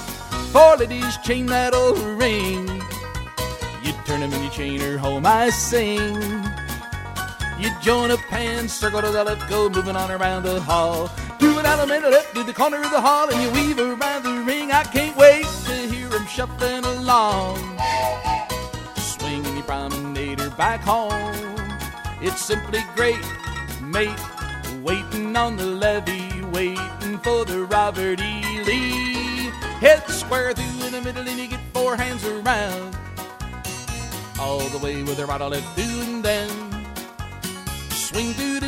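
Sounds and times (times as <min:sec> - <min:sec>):
vocals: 0:00.4 - 0:03.1, 0:03.7 - 0:33.1, 0:34.3 - 0:37.1, 0:37.9 - 0:38.6.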